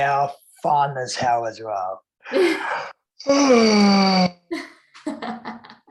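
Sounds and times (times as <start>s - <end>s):
speech: 0.0s - 5.6s
person yawning: 2.3s - 4.4s.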